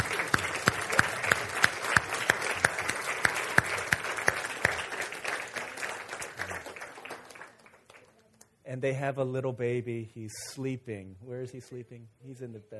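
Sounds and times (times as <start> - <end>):
audience applause: 0.0 - 8.2
speech: 8.7 - 12.7.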